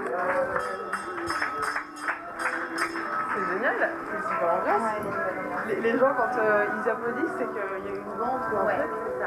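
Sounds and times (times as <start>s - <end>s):
speech: 0.2s - 0.8s, 5.8s - 9.2s
bell ringing in an office: 0.6s - 5.2s.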